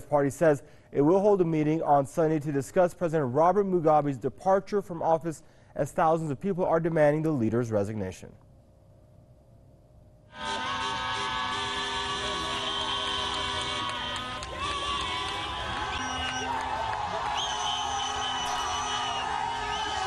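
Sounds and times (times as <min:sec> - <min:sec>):
speech: 0:00.1 - 0:08.4
crowd booing a departing motorcade: 0:10.4 - 0:20.0.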